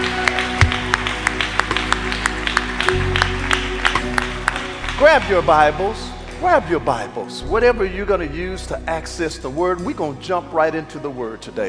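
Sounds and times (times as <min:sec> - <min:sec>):
audience clapping: 0:00.0 - 0:07.1
speech: 0:05.0 - 0:11.6.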